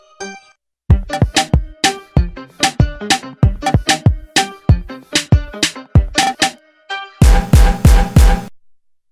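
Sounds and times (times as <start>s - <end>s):
instrumental English ringtone: 1.0s - 8.2s.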